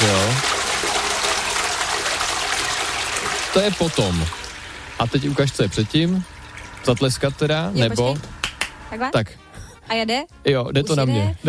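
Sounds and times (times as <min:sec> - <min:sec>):
toilet flushing: 0:00.0 - 0:08.9
speech: 0:03.6 - 0:04.4, 0:05.0 - 0:11.4.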